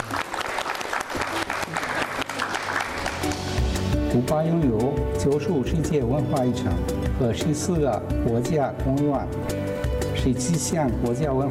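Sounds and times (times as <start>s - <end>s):
audience applause welcoming a speaker: 0.0s - 3.8s
speech: 4.2s - 9.6s, 10.2s - 11.4s.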